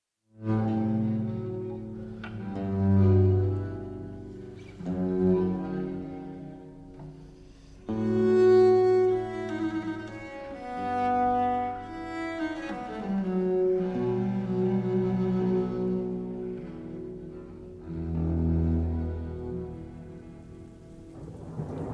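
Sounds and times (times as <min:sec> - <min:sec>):
two violins and orchestra playing: 0:00.5 - 0:20.8.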